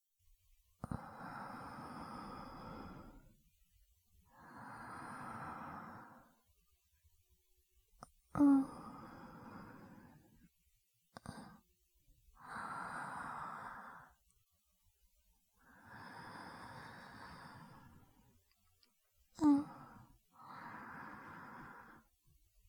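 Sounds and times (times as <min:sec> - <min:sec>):
sleeping breathing: 0:00.9 - 0:03.3, 0:04.3 - 0:06.4, 0:08.4 - 0:10.4, 0:12.4 - 0:14.2, 0:15.6 - 0:18.3, 0:19.4 - 0:22.2.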